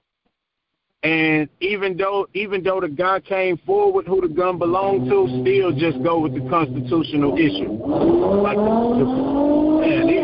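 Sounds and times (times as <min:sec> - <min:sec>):
speech: 0:01.0 - 0:10.2
racing car engines revving beside a freeway: 0:04.4 - 0:10.2.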